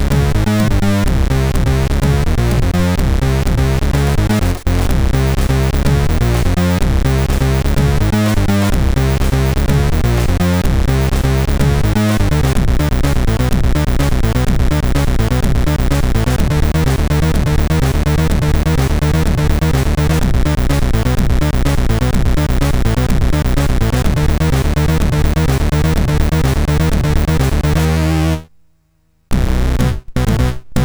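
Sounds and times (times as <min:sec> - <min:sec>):
techno music from MOS6581R3 sound chip: 0:00.0 - 0:28.4, 0:29.3 - 0:30.8.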